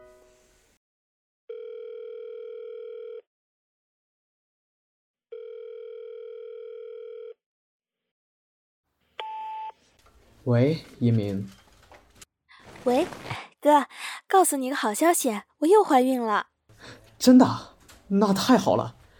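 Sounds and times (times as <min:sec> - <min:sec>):
telephone ringing tone during call: 0:01.5 - 0:03.2, 0:05.3 - 0:07.4
speech: 0:10.4 - 0:11.6, 0:12.8 - 0:19.0.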